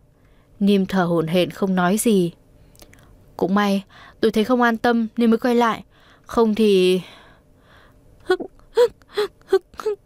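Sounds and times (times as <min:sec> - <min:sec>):
speech: 0:00.6 - 0:02.4, 0:03.4 - 0:07.2, 0:08.3 - 0:10.0
person crying, sobbing bitterly: 0:08.2 - 0:10.0.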